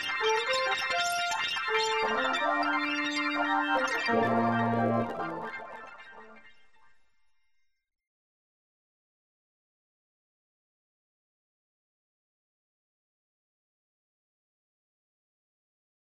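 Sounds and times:
Arabic 17-tone maqam ussaq music: 0.0s - 5.8s.

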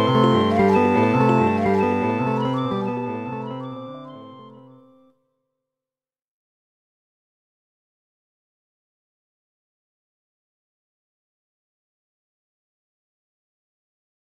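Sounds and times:
cello: 0.0s - 4.3s
Rhodes piano: 0.0s - 4.7s
electric guitar: 0.0s - 4.8s
shakuhachi: 0.0s - 4.9s.

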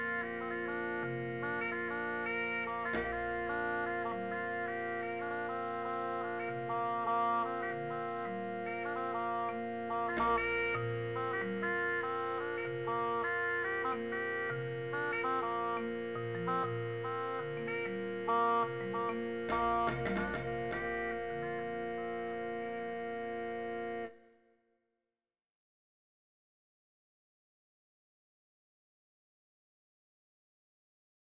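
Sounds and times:
bagpipe: 0.0s - 24.2s.

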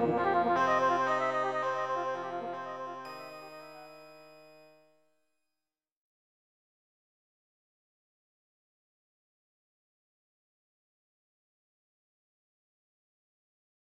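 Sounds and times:
old Indian gamut: 0.0s - 4.9s.

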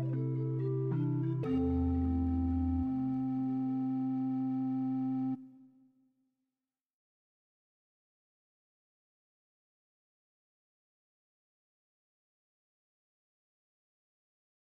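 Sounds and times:
tune: 0.0s - 5.6s.

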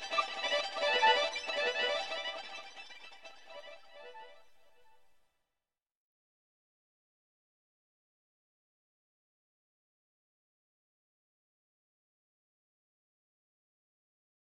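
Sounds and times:
virtuoso violin playing: 0.0s - 4.3s.

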